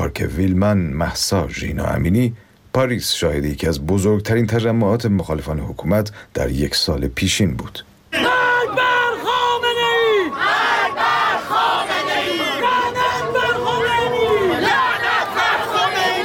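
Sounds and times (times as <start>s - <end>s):
speech: 0.2s - 7.9s
protest crowd chanting slogans: 8.2s - 16.2s.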